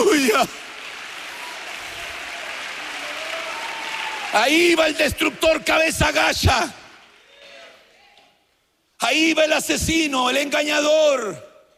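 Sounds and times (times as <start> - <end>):
audience clapping hands: 0.0 - 7.8
speech: 0.4 - 0.7, 4.3 - 6.8, 9.0 - 11.5.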